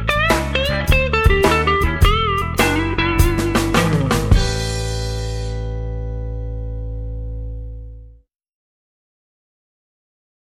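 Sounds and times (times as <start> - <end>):
blues jazz music: 0.0 - 8.1.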